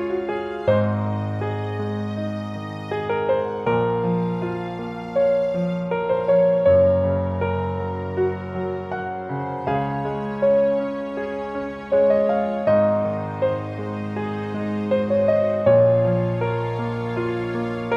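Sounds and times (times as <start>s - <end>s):
beautiful piano music: 0.0s - 17.9s.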